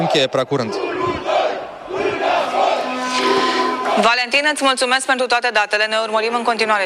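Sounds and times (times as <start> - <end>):
agitated crowd shouting at a violent street protest in Piața Victoriei: 0.0 - 3.1
speech: 0.1 - 1.4, 4.0 - 6.8.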